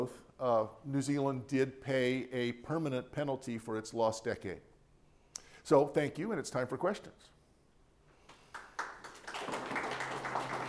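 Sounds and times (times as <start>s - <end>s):
speech: 0.0s - 4.7s, 5.6s - 7.4s
audience applause: 8.5s - 10.6s.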